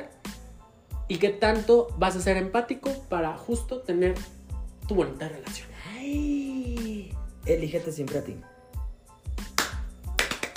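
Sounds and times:
speech: 1.1s - 6.4s, 7.5s - 8.5s
applause: 9.5s - 10.5s.

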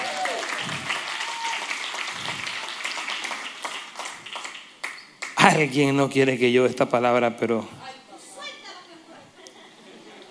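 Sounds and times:
audience applause: 0.0s - 5.4s
speech: 5.5s - 7.8s
laughter: 9.2s - 10.2s.

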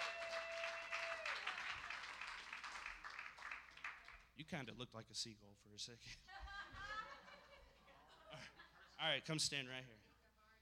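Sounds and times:
audience clapping: 0.0s - 4.4s
speech: 4.4s - 6.8s, 8.4s - 10.1s
laughter: 6.1s - 9.0s.

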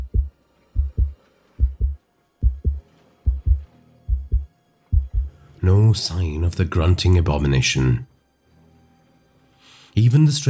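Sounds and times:
heartbeat: 0.0s - 5.3s
speech: 5.6s - 8.1s, 10.0s - 10.4s.

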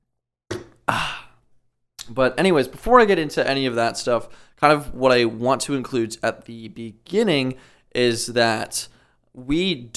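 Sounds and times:
water bottle opening: 0.5s - 0.9s
speech: 2.1s - 9.9s.

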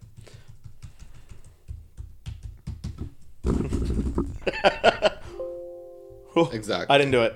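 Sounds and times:
typing on a computer keyboard: 0.0s - 3.3s
speech: 3.4s - 5.0s, 6.4s - 7.3s
laughter: 4.4s - 5.4s
bright ringing tones: 5.2s - 6.8s.

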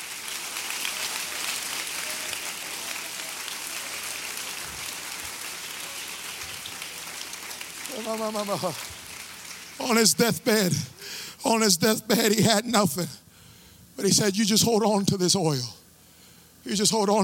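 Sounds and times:
audience clapping hands: 0.0s - 10.8s
speech: 8.0s - 8.9s, 9.8s - 13.2s, 14.0s - 15.8s, 16.6s - 17.2s.

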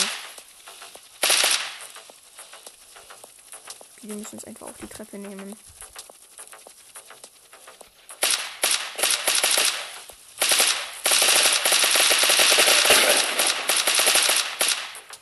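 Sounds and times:
video game automatic gunfire: 0.0s - 3.7s, 8.2s - 15.1s
speech: 4.0s - 5.9s.

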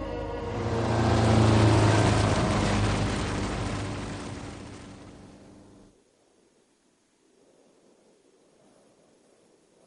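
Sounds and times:
vehicle speeding across desert sand: 0.2s - 5.9s.

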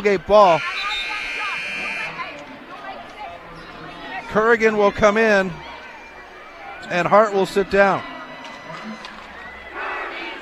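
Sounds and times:
speech: 0.0s - 0.7s, 4.3s - 5.7s, 6.8s - 8.1s
referee's whistle stopping basketball play: 0.4s - 2.2s.

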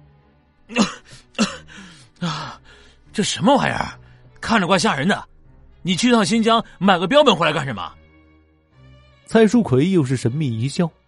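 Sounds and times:
man coughing after choking on naan bread: 0.7s - 2.6s
speech: 3.2s - 8.0s, 9.3s - 11.0s.

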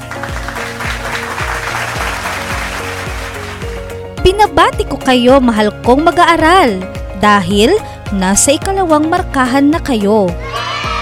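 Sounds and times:
loud applause: 0.0s - 3.8s
speech: 4.4s - 10.6s.

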